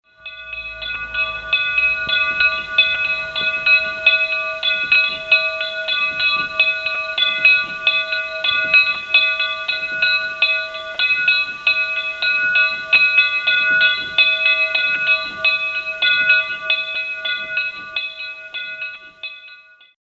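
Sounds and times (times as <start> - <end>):
bell ringing: 0.1 - 19.9.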